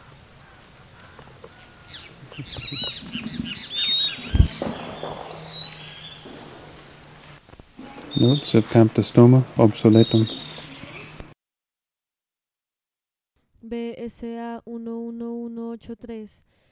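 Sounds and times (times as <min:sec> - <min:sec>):
bird calls with thin high whistles: 0:01.9 - 0:07.4, 0:08.1 - 0:08.6, 0:09.9 - 0:11.2.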